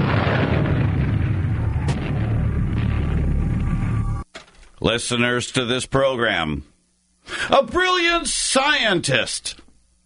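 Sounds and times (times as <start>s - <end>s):
mortar shells booming: 0.0s - 4.1s
speech: 4.8s - 6.7s, 7.3s - 9.6s.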